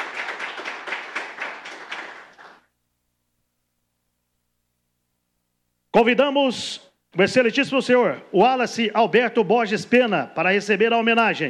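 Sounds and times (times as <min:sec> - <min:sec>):
applause: 0:00.0 - 0:02.7
speech: 0:06.0 - 0:11.4.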